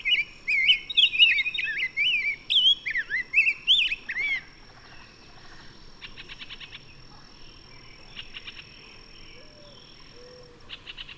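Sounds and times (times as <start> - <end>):
bird song: 0.0 - 11.1.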